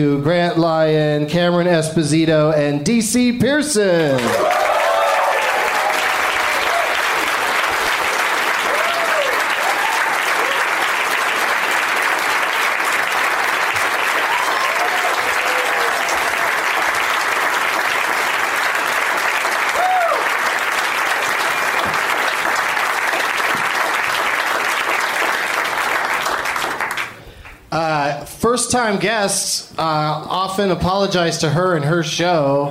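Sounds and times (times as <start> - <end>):
speech: 0.0 - 4.6, 28.9 - 32.6
audience clapping for three stand-up comedians at a comedy show: 4.0 - 27.7.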